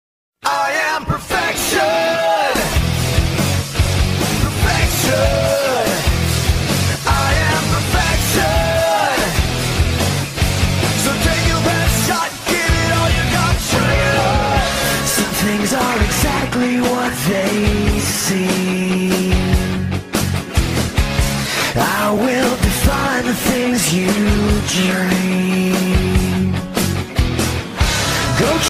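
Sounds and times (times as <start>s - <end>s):
theme music: 0.5s - 28.6s.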